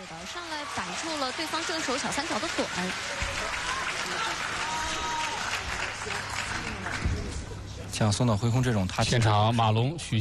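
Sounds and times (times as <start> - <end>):
audience applause: 0.0 - 7.7
speech: 0.3 - 7.0, 7.9 - 10.1.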